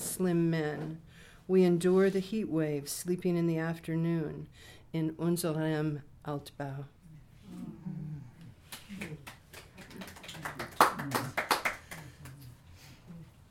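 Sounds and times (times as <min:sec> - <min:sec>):
speech: 0:00.2 - 0:07.0
light scattered clapping from a small audience: 0:08.6 - 0:12.6.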